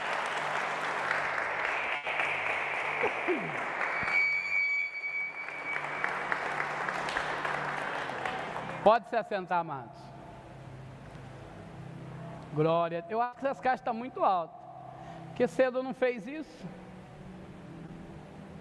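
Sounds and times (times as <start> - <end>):
sustained applause from a large audience: 0.0 - 8.9
speech: 3.0 - 3.8, 8.8 - 10.0, 12.6 - 14.6, 15.4 - 16.8
brief tonal whistle: 3.8 - 6.4.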